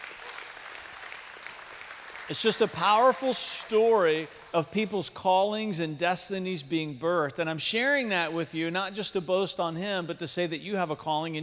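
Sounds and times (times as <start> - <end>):
audience applause: 0.0 - 4.5
speech: 2.3 - 11.4.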